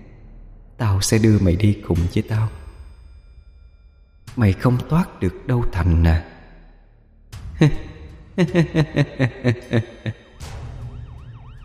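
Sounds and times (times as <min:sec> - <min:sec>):
speech: 0:01.0 - 0:02.6, 0:04.4 - 0:06.4, 0:07.6 - 0:10.6
laughter: 0:08.4 - 0:10.2
ambulance siren: 0:10.4 - 0:11.6.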